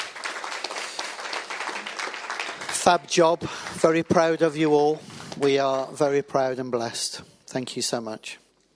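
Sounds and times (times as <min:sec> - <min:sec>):
round of applause at a church service: 0:00.0 - 0:04.4
speech: 0:02.9 - 0:08.4.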